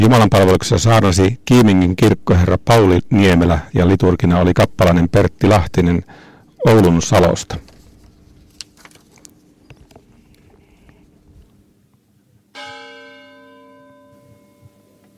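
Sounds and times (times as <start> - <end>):
speech: 0.0 - 7.7
Konginkangas church bells ringing: 12.6 - 15.1.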